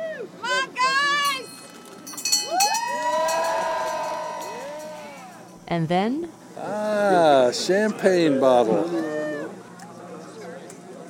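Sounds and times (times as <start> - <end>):
traditional finish line bell ringing: 1.2 - 5.8
speech: 5.7 - 9.0.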